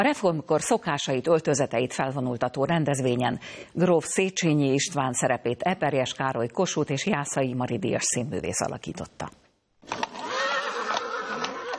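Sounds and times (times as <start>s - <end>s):
speech: 0.0s - 10.0s
horse whinnying as a horse-drawn carriage arrives with a hussar escort: 9.9s - 11.7s.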